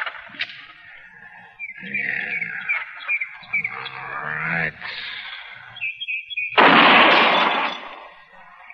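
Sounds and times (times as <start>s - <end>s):
gunshot from a freshly repaired gun steadied on a fence rail: 6.6s - 8.1s.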